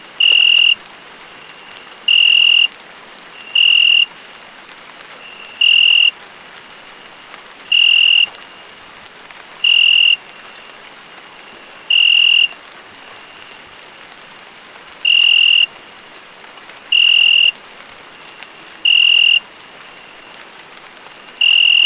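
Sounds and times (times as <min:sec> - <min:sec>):
cricket chirping in pure-toned bursts: 0:00.2 - 0:00.8, 0:02.1 - 0:02.7, 0:03.4 - 0:04.1, 0:05.3 - 0:06.1, 0:07.7 - 0:08.4, 0:09.6 - 0:10.2, 0:11.8 - 0:12.6, 0:15.0 - 0:15.7, 0:16.9 - 0:17.5, 0:18.8 - 0:20.3, 0:21.4 - 0:21.8.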